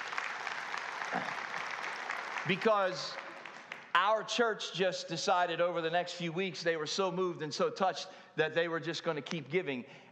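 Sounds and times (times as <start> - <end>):
church audience clapping: 0.0 - 4.2
speech: 1.1 - 1.4, 2.4 - 3.2, 4.0 - 10.0.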